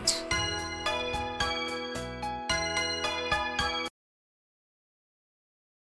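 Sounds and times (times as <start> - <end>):
bells ringing: 0.3 - 3.9.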